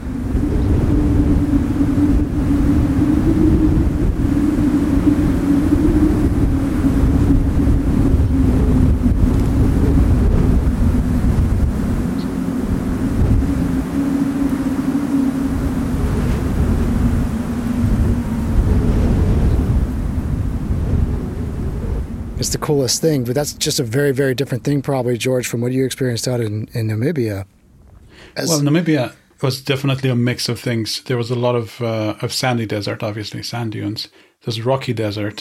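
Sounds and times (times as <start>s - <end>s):
loud constant rumble of gusts: 0.0s - 25.4s
wind whistling over plowed cotton field rows: 0.0s - 25.4s
speech: 22.7s - 27.6s, 28.3s - 35.3s.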